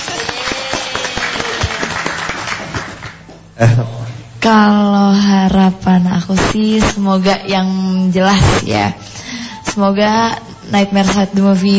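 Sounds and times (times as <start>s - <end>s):
audience applause: 0.0s - 3.3s
speech: 3.6s - 9.2s, 9.8s - 11.7s.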